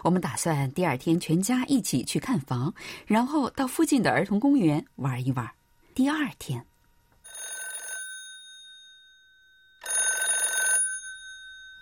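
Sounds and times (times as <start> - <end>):
speech: 0.0 - 6.7
telephone ringing with electronic bell: 7.3 - 11.8.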